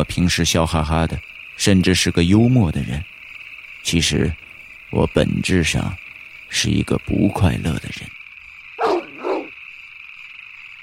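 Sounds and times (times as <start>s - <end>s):
speech: 0.0s - 3.2s, 3.8s - 8.2s
large dog barking fiercely: 8.8s - 9.6s.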